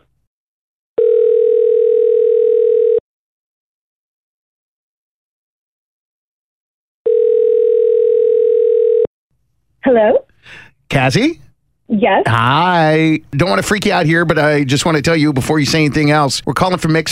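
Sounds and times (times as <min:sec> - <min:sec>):
long steady telephone line tones while a call is being placed: 0:01.0 - 0:03.0, 0:07.0 - 0:09.1
speech: 0:10.0 - 0:10.2, 0:10.9 - 0:17.1.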